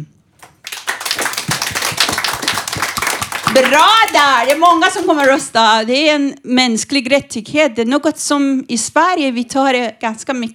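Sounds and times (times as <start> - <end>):
audience applause: 0.4 - 5.5
speech: 3.5 - 10.5.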